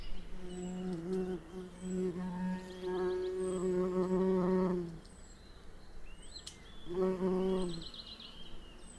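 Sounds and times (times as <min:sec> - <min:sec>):
bumblebee flight buzz: 0:00.3 - 0:05.0, 0:06.9 - 0:08.2.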